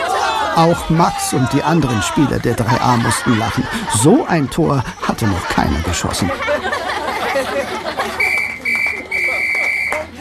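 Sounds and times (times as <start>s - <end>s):
laughter: 0.0s - 10.1s
speech: 0.6s - 6.8s
referee's whistle ending a football match: 8.2s - 10.1s.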